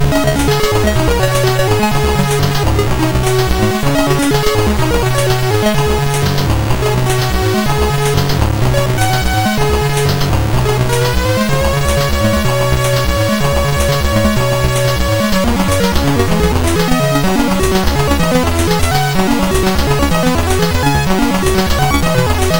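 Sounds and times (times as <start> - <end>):
MOS6581R3 SID chip music: 0.0 - 22.5.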